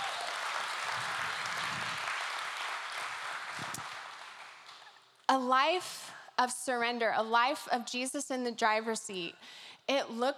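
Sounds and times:
audience applause: 0.0 - 4.9
speech: 5.3 - 10.3.

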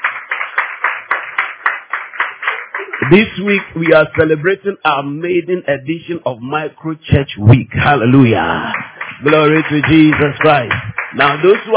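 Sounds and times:
audience clapping: 0.0 - 4.7, 8.0 - 11.7
speech: 3.0 - 11.7.

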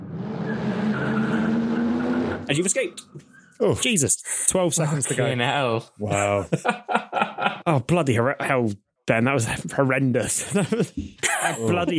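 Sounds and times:
car engine revving as the vehicle pulls away: 0.0 - 3.0
speech: 2.5 - 11.9
laughter: 6.1 - 7.8, 10.2 - 11.9.

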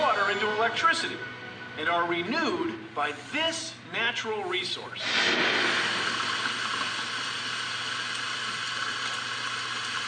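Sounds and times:
speech: 0.3 - 6.1
rain: 5.1 - 10.0.

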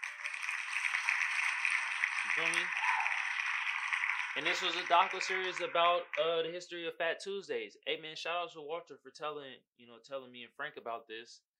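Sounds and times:
hand claps: 0.0 - 6.5
speech: 2.2 - 2.9, 4.4 - 11.5.

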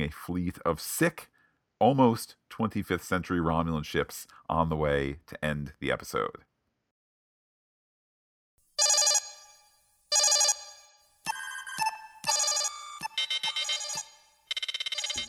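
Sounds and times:
speech: 0.0 - 6.5
starship tactical analysis alarm going off: 8.8 - 15.2.

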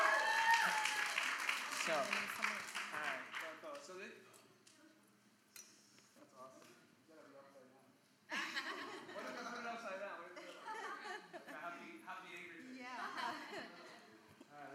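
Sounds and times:
round of applause: 0.0 - 3.9
laughter: 8.3 - 11.9, 13.0 - 14.1.

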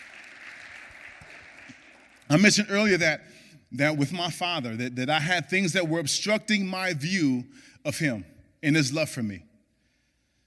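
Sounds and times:
audience clapping: 0.0 - 2.9
speech: 2.3 - 9.5.

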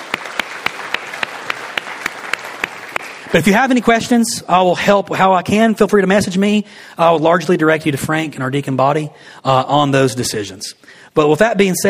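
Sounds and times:
audience applause: 0.0 - 3.5
speech: 3.3 - 11.8.

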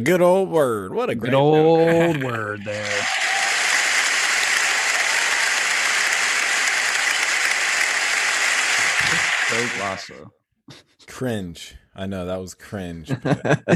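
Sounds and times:
speech: 0.0 - 3.2, 9.5 - 13.7
laughter: 1.1 - 4.4, 13.0 - 13.7
crowd clapping: 1.9 - 10.2.

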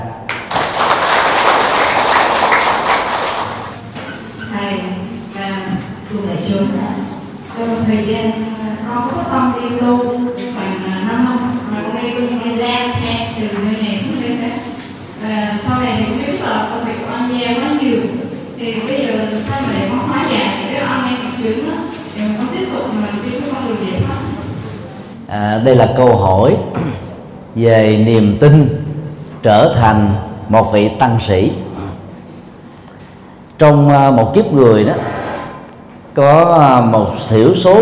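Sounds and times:
crowd applause: 0.3 - 3.8
speech: 6.2 - 7.0, 7.6 - 24.3, 25.3 - 27.0, 27.6 - 28.8, 29.4 - 31.6, 33.6 - 35.2, 36.2 - 37.8.

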